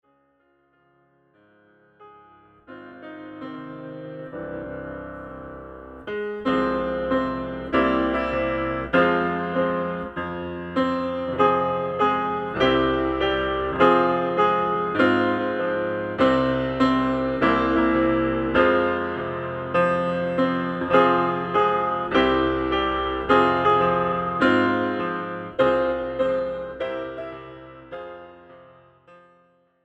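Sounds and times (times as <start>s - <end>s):
piano: 0.0s - 29.8s.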